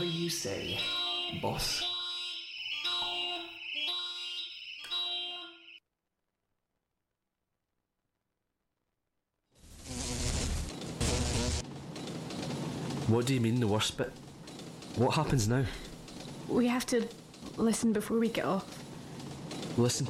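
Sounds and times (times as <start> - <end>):
speech: 0.0 - 1.9, 13.1 - 14.3, 15.0 - 15.9, 16.5 - 18.8, 19.8 - 20.0
secondary alarm system buzzing electronic tones: 0.0 - 5.8, 9.7 - 11.6
harsh noisy burst: 9.6 - 11.7.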